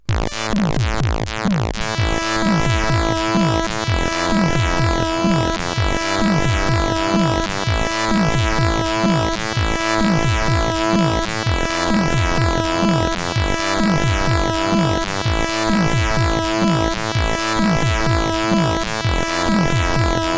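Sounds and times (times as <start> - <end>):
chiptune music on CSG8580R5 sound chip: 0.0 - 20.3.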